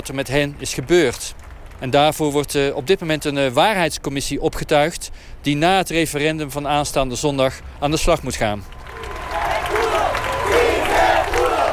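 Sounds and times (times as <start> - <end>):
speech: 0.0 - 9.2
crowd cheering and applauding: 8.6 - 11.7.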